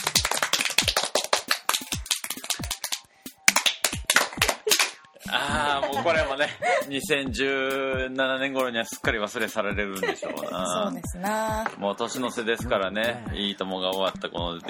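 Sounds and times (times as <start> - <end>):
scattered applause from an audience: 0.0 - 3.0, 3.6 - 5.0
laughter: 4.4 - 7.1, 9.8 - 10.9
speech: 5.3 - 14.6.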